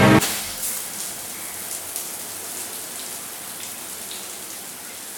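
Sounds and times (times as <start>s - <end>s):
shower water falling: 0.2s - 5.1s.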